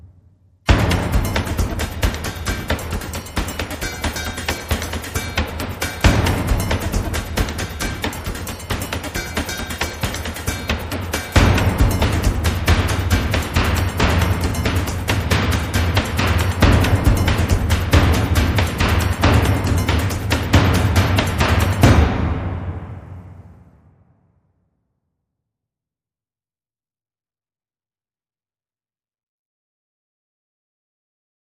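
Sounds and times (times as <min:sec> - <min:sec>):
high drums: 0:00.7 - 0:23.9.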